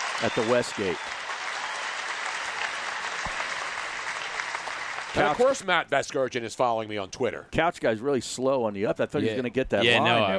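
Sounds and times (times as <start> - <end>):
crowd applauding: 0.0 - 5.6
speech: 0.2 - 1.3, 5.2 - 10.3.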